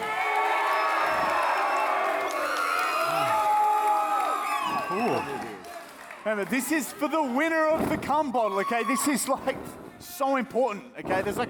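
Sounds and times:
crowd cheering and whooping: 0:00.0 - 0:07.7
speech: 0:06.4 - 0:11.4.

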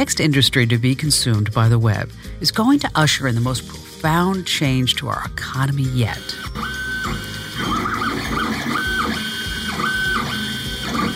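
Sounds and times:
speech: 0:00.0 - 0:07.8
3D printer motors whirring: 0:06.2 - 0:11.1.

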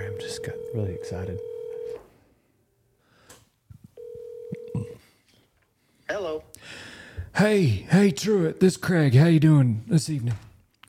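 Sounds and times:
telephone tone: 0:00.0 - 0:02.0, 0:04.0 - 0:05.0
speech: 0:00.2 - 0:01.5, 0:06.1 - 0:06.8, 0:07.4 - 0:10.5.

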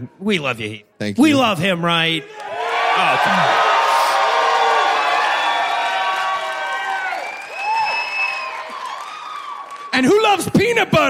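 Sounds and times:
speech: 0:00.0 - 0:03.7, 0:10.0 - 0:11.0
audience applause: 0:02.4 - 0:10.4.

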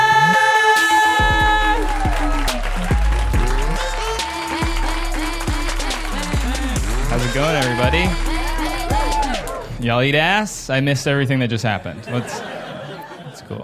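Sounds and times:
audience applause: 0:01.1 - 0:09.7
speech: 0:07.8 - 0:08.3, 0:09.8 - 0:12.5
laughter: 0:11.6 - 0:13.6.

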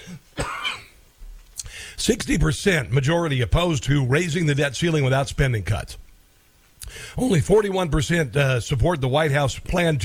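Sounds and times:
person clearing throat: 0:00.0 - 0:01.0
speech: 0:02.0 - 0:06.1, 0:07.0 - 0:10.0.

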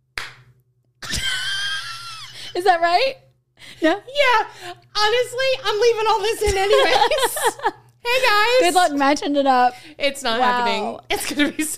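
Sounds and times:
hand clap for audio sync: 0:00.2 - 0:00.5
speech: 0:02.6 - 0:03.2, 0:03.8 - 0:11.7
laughter: 0:06.6 - 0:07.8.

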